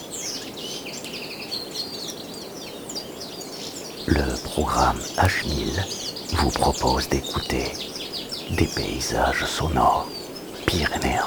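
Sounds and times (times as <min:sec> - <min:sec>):
birds singing: 0:00.0 - 0:11.2
windy breeze among trees: 0:03.2 - 0:11.2
speech: 0:04.1 - 0:07.9, 0:08.5 - 0:11.2.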